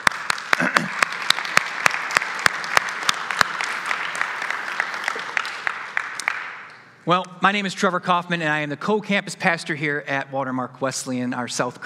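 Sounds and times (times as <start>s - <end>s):
room full of people clapping: 0.0s - 7.0s
speech: 7.1s - 11.8s.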